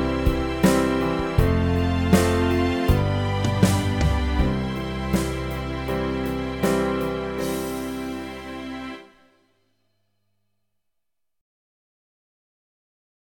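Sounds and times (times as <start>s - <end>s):
keyboard backing track: 0.0s - 9.2s.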